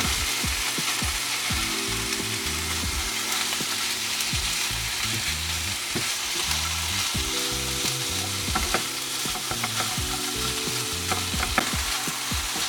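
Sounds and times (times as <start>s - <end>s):
faint music tones: 0.0s - 12.6s
ground meat sizzling while stir-fried in a pan for XO sauce noodles: 0.0s - 12.6s
scraping and stirring strokes in a pan: 3.2s - 12.6s.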